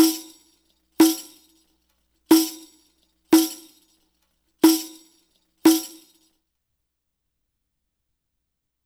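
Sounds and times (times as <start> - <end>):
Arabic rhythm percussion: 0.0 - 0.4, 1.0 - 1.5, 2.3 - 3.8, 4.6 - 5.1, 5.7 - 6.2.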